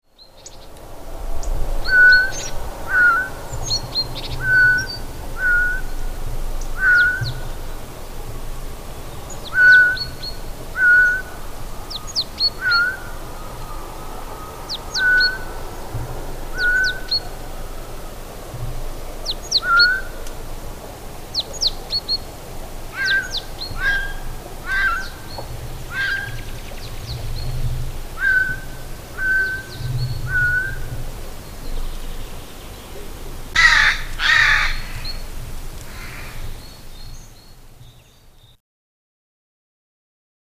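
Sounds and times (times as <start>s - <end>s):
myna bird calling: 1.8s - 7.9s, 9.1s - 18.2s, 19.2s - 20.3s, 21.3s - 22.3s, 22.9s - 37.3s.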